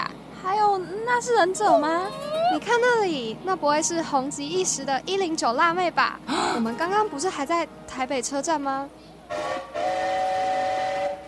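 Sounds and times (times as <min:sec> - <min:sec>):
speech: 0:00.8 - 0:09.7
train whistle blasts as a train is about to depart: 0:09.3 - 0:11.2.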